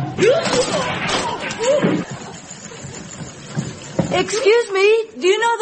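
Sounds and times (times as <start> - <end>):
bicycle knocked into a ditch: 0.2 - 2.6
speech: 4.2 - 5.6.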